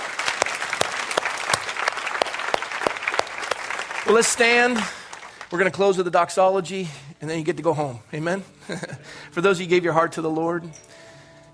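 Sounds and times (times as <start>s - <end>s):
audience clapping: 0.0s - 6.0s
speech: 4.1s - 11.0s.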